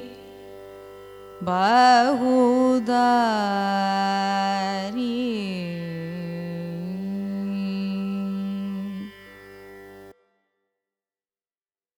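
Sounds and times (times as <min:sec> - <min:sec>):
Carnatic raga music: 0:00.0 - 0:10.6.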